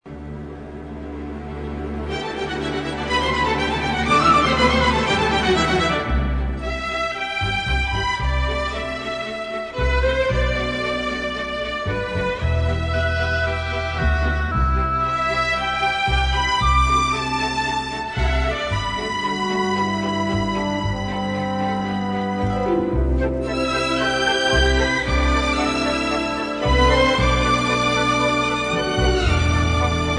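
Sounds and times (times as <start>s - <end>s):
instrumental music: 0.1s - 30.1s.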